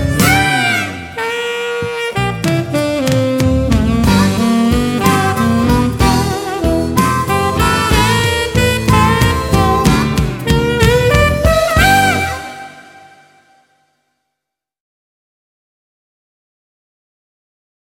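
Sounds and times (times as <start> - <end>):
Grade 5 modern floor limbering dance class music: 0.0 - 13.3.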